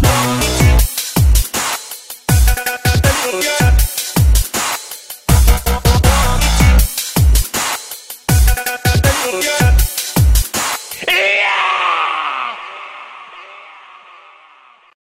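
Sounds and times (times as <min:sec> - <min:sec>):
hard dubstep music: 0:00.0 - 0:11.4.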